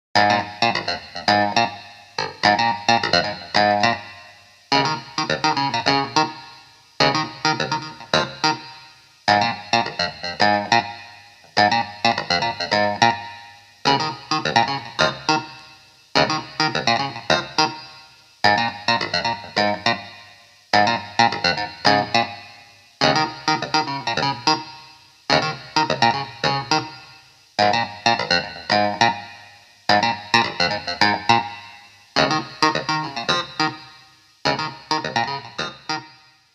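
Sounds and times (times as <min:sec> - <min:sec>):
Hohner Clavinet D6 clean clavinet: 0:00.2 - 0:36.3.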